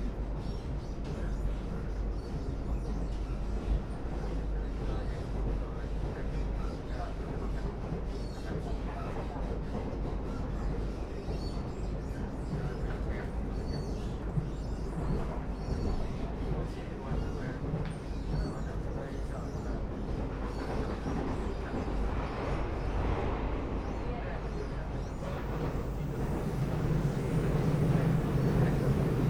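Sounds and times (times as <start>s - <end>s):
local express train rumble and rattle between Nangang and Qidu: 0.0s - 29.2s
faint thin high whine: 24.9s - 29.2s.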